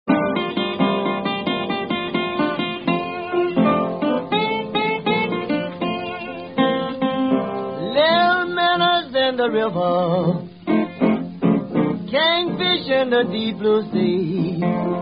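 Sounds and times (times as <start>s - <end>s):
blues music: 0.1s - 15.0s.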